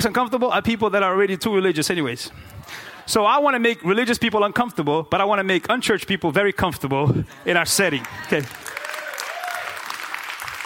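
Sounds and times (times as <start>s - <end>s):
speech: 0.0s - 8.7s
crowd clapping: 7.8s - 10.6s.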